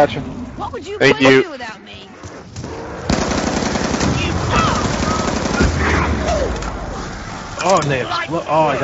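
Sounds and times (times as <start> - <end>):
speech: 0.0 - 2.0, 7.6 - 8.8
rapid automatic gunfire in a video game with an insta-kill power-up: 3.1 - 6.0.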